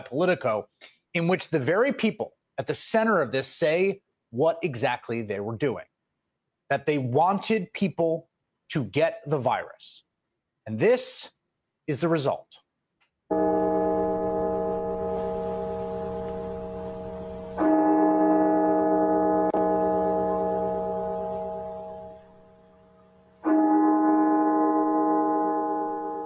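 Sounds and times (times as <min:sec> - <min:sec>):
speech: 0:00.0 - 0:05.9, 0:06.7 - 0:12.6
National Cathedral bell tolling in Washington, D.C.: 0:13.3 - 0:26.2.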